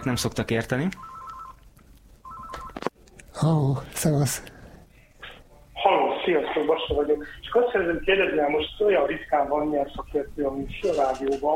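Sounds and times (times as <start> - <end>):
speech: 0.0 - 1.2, 3.4 - 4.6, 6.3 - 11.5
touch-tone beeps dialing a call in to a radio show: 2.2 - 2.8.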